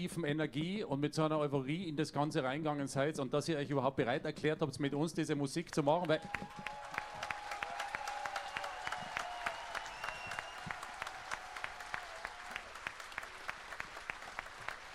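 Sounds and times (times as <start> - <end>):
speech: 0.0 - 6.8
audience applause: 6.1 - 14.9.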